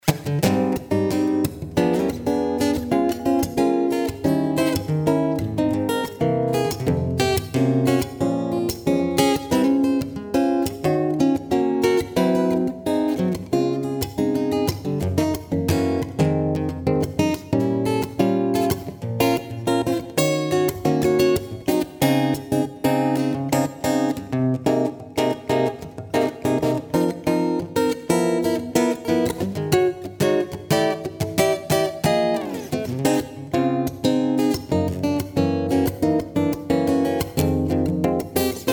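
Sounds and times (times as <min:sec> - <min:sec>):
guitar: 0:00.0 - 0:38.7.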